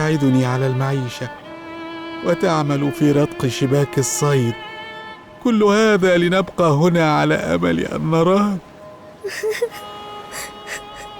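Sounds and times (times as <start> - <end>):
speech: 0.1 - 1.4, 2.2 - 4.7, 5.4 - 9.8
people crying: 9.2 - 11.1.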